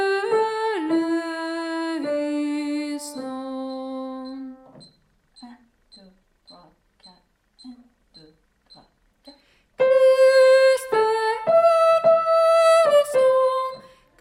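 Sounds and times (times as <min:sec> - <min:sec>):
sacred piano piece: 0:00.0 - 0:04.8, 0:09.8 - 0:13.9.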